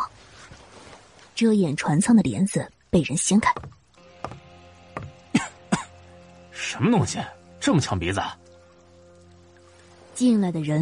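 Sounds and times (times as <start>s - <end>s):
speech: 1.4s - 3.8s, 6.7s - 8.4s, 10.2s - 10.8s
coughing fit: 5.3s - 5.9s.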